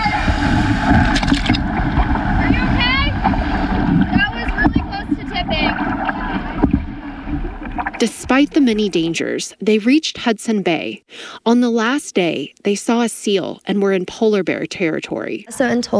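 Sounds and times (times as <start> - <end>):
canoe paddling through waves on Lake Winnipeg: 0.0 - 9.0
speech: 8.0 - 15.9.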